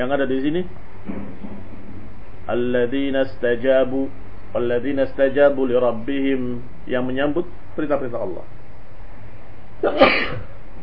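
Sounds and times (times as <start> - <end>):
speech: 0.0 - 1.2, 2.5 - 8.6, 9.8 - 10.5
sneeze: 9.8 - 10.5.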